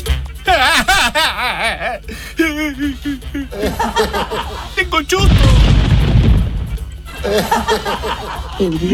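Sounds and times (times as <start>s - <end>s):
laughter: 0.5s - 5.0s, 7.1s - 8.9s
speech: 1.5s - 5.9s, 7.2s - 8.9s
thunder during an electrical storm: 5.2s - 7.1s.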